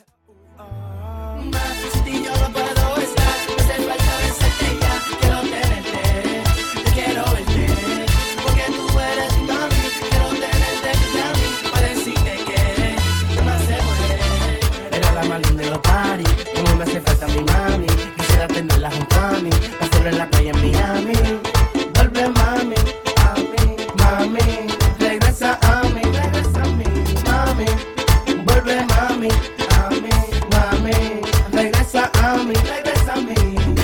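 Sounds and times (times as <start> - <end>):
latin music: 0.0 - 33.8.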